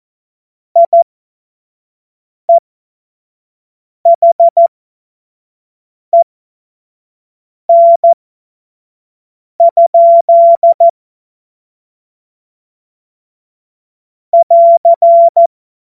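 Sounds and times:
Morse code course tones: 0:04.2 - 0:04.7, 0:07.7 - 0:08.2, 0:09.6 - 0:10.9, 0:14.4 - 0:15.5.

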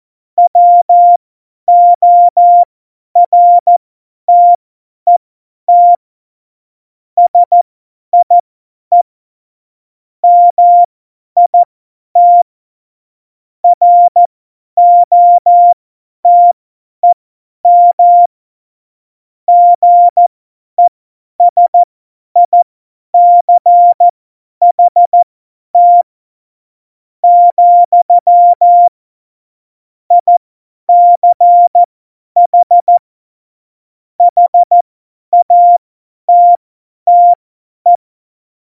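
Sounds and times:
CW Morse code beeps: 0:00.5 - 0:06.0, 0:07.3 - 0:07.6, 0:10.2 - 0:10.9, 0:11.5 - 0:12.4, 0:13.6 - 0:18.3, 0:19.5 - 0:20.2, 0:20.8 - 0:22.6, 0:23.2 - 0:25.2, 0:25.8 - 0:26.0, 0:27.2 - 0:29.0, 0:30.1 - 0:33.0, 0:34.2 - 0:34.8, 0:35.4 - 0:38.0.

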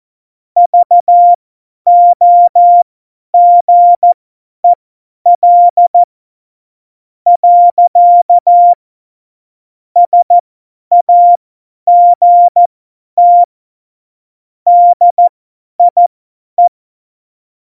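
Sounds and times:
CW Morse code beeps: 0:00.6 - 0:02.8, 0:03.4 - 0:04.2, 0:05.3 - 0:06.1, 0:07.3 - 0:08.8, 0:10.0 - 0:13.5, 0:14.7 - 0:16.7.

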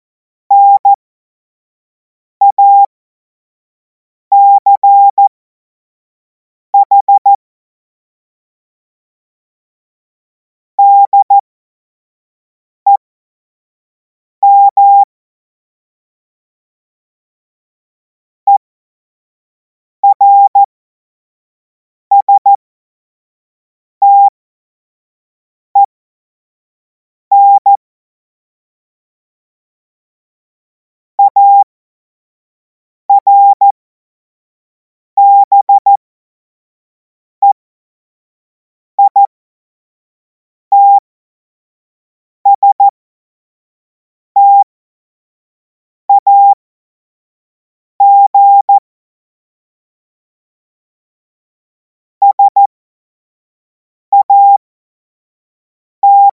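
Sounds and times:
CW Morse code beeps: 0:00.5 - 0:01.0, 0:02.4 - 0:02.9, 0:04.3 - 0:05.3, 0:06.8 - 0:07.4, 0:10.8 - 0:11.4, 0:14.4 - 0:15.1, 0:20.0 - 0:20.7, 0:22.1 - 0:22.6, 0:24.0 - 0:24.3, 0:27.3 - 0:27.8, 0:31.2 - 0:31.7, 0:33.1 - 0:33.7, 0:35.2 - 0:36.0, 0:39.0 - 0:39.3, 0:40.7 - 0:41.0, 0:42.5 - 0:42.9, 0:44.4 - 0:44.7, 0:46.1 - 0:46.6, 0:48.0 - 0:48.8, 0:52.2 - 0:52.7, 0:54.1 - 0:54.6, 0:56.0 - 0:56.3.

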